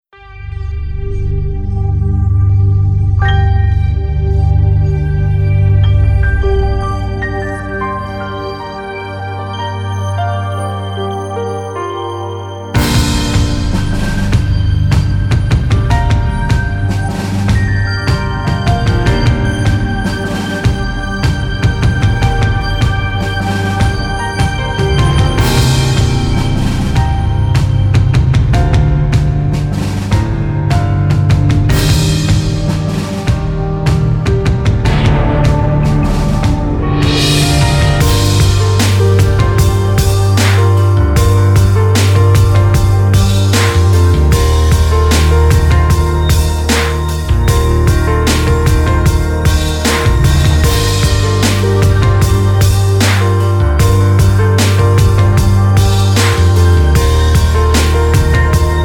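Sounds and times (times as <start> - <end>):
mainstream hip hop music: 0.1 - 58.8.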